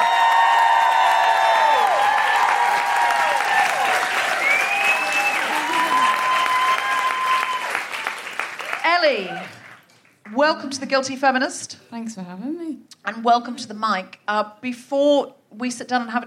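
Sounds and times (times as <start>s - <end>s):
live audience clapping as a musician is welcomed: 0.0s - 10.4s
speech: 10.4s - 16.2s.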